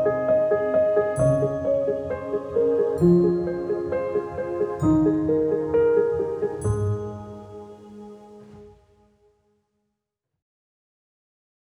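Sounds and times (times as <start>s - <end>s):
peaceful inspirational piano music: 0.0s - 9.0s.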